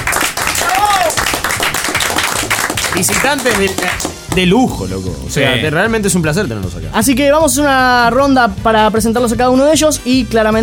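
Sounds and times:
studio audience on a gaming show applauding: 0.0 - 4.5
speech: 3.0 - 10.6.

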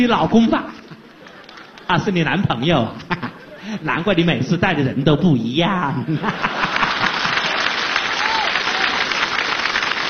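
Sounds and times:
speech: 0.0 - 0.8, 1.9 - 6.7
audience applause at a live comedy show: 0.2 - 2.2, 6.4 - 10.0
laughter: 0.7 - 4.0, 6.0 - 8.1.

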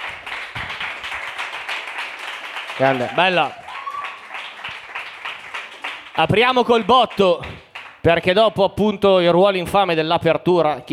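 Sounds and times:
audience applause: 0.0 - 8.0
speech: 2.8 - 3.6, 6.2 - 10.9.

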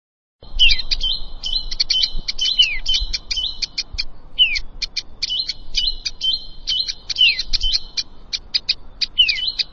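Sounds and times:
Plain prinia song of fast thin buzzy chirps: 0.4 - 9.7.

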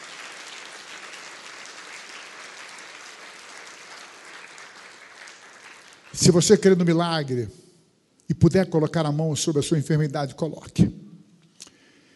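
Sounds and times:
worshippers in a Methodist cathedral applauding during a service: 0.0 - 7.1
speech: 6.1 - 7.6, 8.3 - 11.0.

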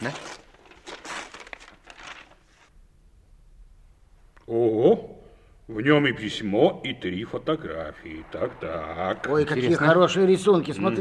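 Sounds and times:
speech: 0.0 - 0.3, 4.5 - 5.1, 5.7 - 11.0
paper package being torn open: 0.0 - 2.7.

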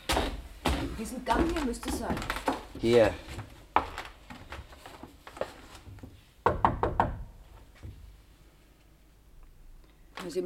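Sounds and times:
faint noise: 0.0 - 10.4
speech: 1.0 - 3.5
knocking on the wooden door of room number 5 along a hallway: 6.4 - 8.0.

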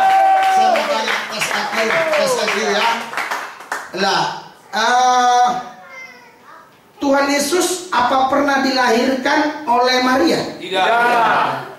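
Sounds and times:
audience cheering: 0.0 - 3.0
audience clapping: 0.0 - 4.2
speech: 1.8 - 3.2, 4.0 - 5.7, 7.0 - 11.7.

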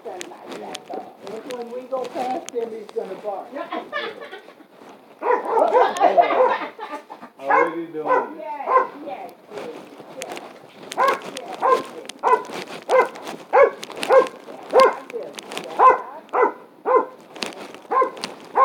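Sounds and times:
speech: 2.0 - 4.4
laughter: 3.6 - 4.8, 5.5 - 7.6
dog barking: 5.2 - 6.8, 7.4 - 9.0, 11.0 - 15.1, 15.8 - 17.2, 17.9 - 18.6.

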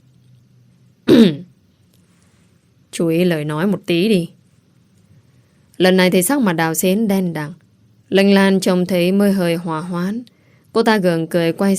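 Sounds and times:
man clearing his throat: 1.1 - 1.5
speech: 1.2 - 1.4, 3.0 - 4.4, 5.8 - 11.7.

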